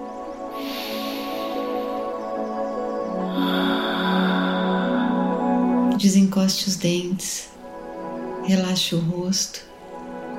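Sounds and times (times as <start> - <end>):
deep breath: 0.5 - 2.4, 3.2 - 5.6
speech: 6.0 - 7.6, 8.5 - 9.7.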